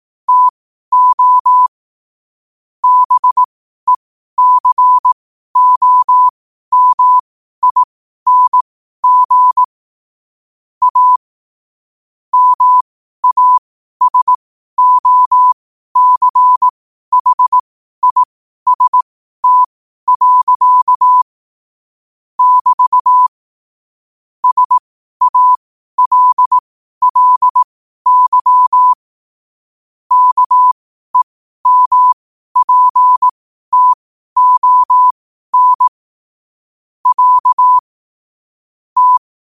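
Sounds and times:
morse code at 5 wpm: 0:00.3 - 0:01.7, 0:02.8 - 0:09.7, 0:10.8 - 0:11.2, 0:12.3 - 0:21.3, 0:22.4 - 0:23.3, 0:24.4 - 0:29.1, 0:30.1 - 0:36.0, 0:37.0 - 0:37.9, 0:39.0 - 0:39.3.

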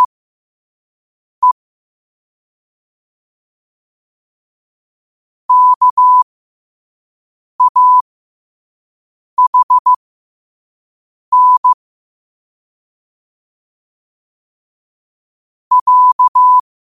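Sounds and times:
morse code at 5 wpm: 0:05.5 - 0:06.2, 0:07.6 - 0:08.0, 0:09.4 - 0:10.0, 0:11.3 - 0:11.8, 0:15.7 - 0:16.6.

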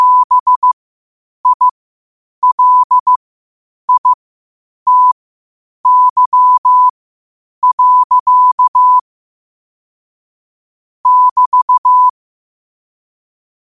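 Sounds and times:
morse code at 5 wpm: 0:00.0 - 0:00.8, 0:01.4 - 0:01.8, 0:02.4 - 0:03.2, 0:03.9 - 0:04.2, 0:04.9 - 0:05.2, 0:05.8 - 0:06.9, 0:07.6 - 0:09.0, 0:11.1 - 0:12.1.

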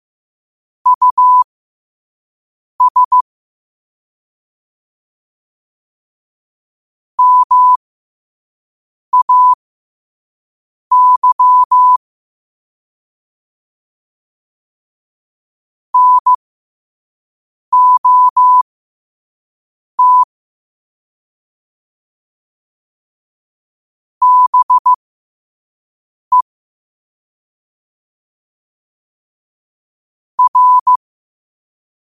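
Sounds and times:
morse code at 5 wpm: 0:00.9 - 0:01.4, 0:02.8 - 0:03.2, 0:07.2 - 0:07.8, 0:09.2 - 0:09.6, 0:10.9 - 0:12.0, 0:16.0 - 0:16.4, 0:17.8 - 0:18.6, 0:20.0 - 0:20.3, 0:24.2 - 0:25.0, 0:30.4 - 0:31.0.

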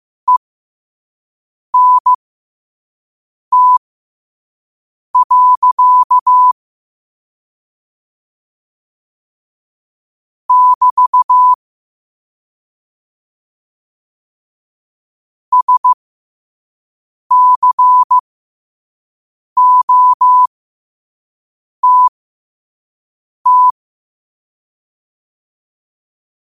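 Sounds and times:
morse code at 5 wpm: 0:01.8 - 0:02.2, 0:03.5 - 0:03.8, 0:05.2 - 0:06.6, 0:10.5 - 0:11.6, 0:15.5 - 0:16.0, 0:17.3 - 0:18.2, 0:19.6 - 0:20.5, 0:21.8 - 0:22.1, 0:23.5 - 0:23.8.

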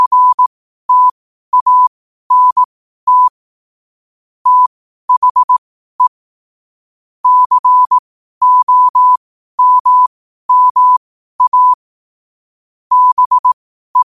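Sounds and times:
morse code at 5 wpm: 0:00.0 - 0:03.3, 0:04.5 - 0:06.1, 0:07.2 - 0:11.8, 0:12.9 - 0:14.0.

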